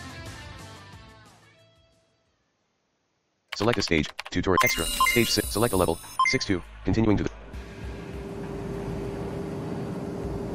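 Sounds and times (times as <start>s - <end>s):
speech: 3.6s - 7.4s
airplane flying through turbulence in a flight video game: 6.7s - 10.5s.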